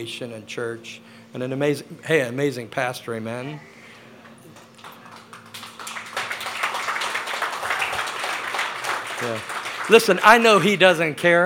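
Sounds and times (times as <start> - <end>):
speech: 0.0 - 3.8, 9.2 - 11.4
quiet polite golf clap: 4.5 - 11.4.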